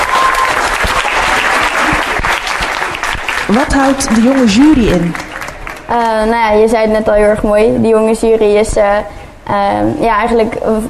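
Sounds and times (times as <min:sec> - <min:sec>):
audience applause: 0:00.0 - 0:06.2
speech: 0:03.5 - 0:05.2, 0:05.9 - 0:10.8.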